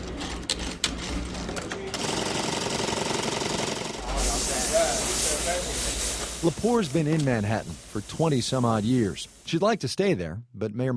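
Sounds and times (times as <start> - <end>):
sewing machines in a dress designer's Garment District workshop in Manhattan: 0.0 - 4.0
steam hissing on fabric: 4.0 - 9.6
speech: 6.4 - 10.9.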